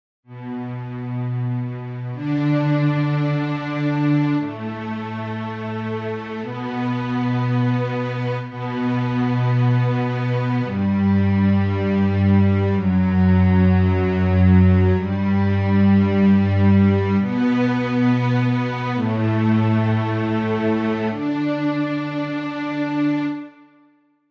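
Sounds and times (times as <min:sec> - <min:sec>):
strings: 0:00.3 - 0:24.0.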